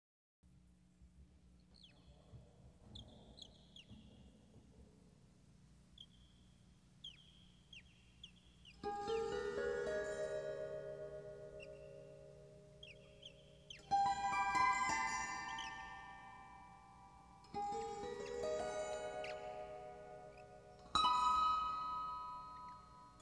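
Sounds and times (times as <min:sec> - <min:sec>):
rainforest ambience: 0:05.9 - 0:22.8.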